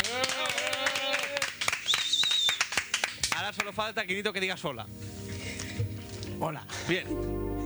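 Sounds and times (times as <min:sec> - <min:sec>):
audience clapping: 0:00.0 - 0:03.8
speech: 0:03.6 - 0:05.1, 0:06.4 - 0:07.5.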